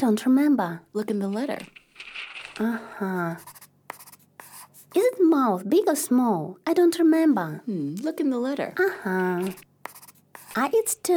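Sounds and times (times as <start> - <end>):
speech: 0.0 - 3.6, 4.9 - 9.7, 10.6 - 11.1
drawing a monster on a sheet of paper: 3.2 - 5.2, 9.2 - 10.9.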